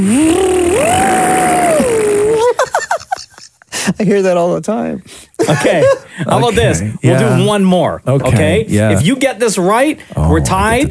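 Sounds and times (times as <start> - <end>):
speech: 0.0 - 0.6, 4.0 - 10.8
person vocally imitating a car speeding up: 0.0 - 2.6.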